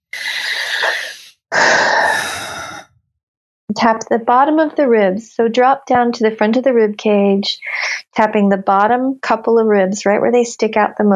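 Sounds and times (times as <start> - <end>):
big deep breaths during a tapping exercise: 0.1 - 2.9
speech: 3.8 - 11.1.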